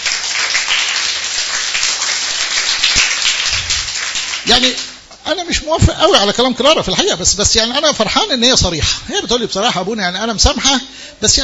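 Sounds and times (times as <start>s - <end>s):
audience applause for an audience member: 0.0s - 4.9s
speech: 4.5s - 11.4s.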